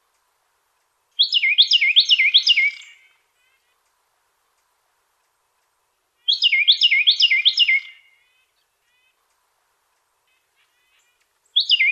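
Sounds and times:
Carolina wren singing repeated two-part phrases: 0:00.8 - 0:04.0, 0:06.1 - 0:11.9.

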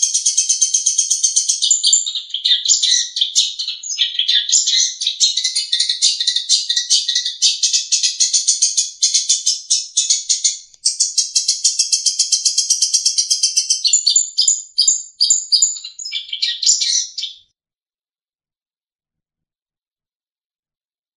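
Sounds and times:
long-tailed shrike trilling: 0:00.0 - 0:17.4.

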